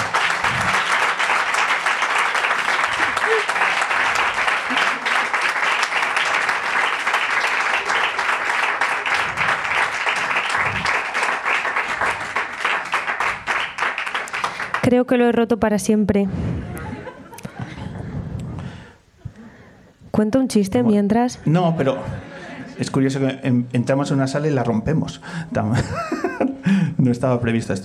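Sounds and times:
laughter: 0.0s - 12.5s, 16.6s - 19.8s, 21.8s - 23.0s, 25.6s - 26.8s
audience applause: 0.0s - 14.9s
speech: 14.9s - 16.5s, 20.2s - 26.2s, 27.0s - 27.8s.

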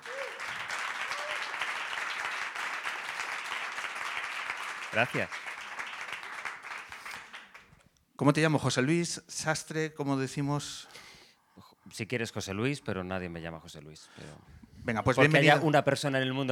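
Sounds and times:
audience applause: 0.0s - 7.7s
speech: 4.9s - 5.4s, 8.2s - 11.0s, 12.0s - 16.5s.

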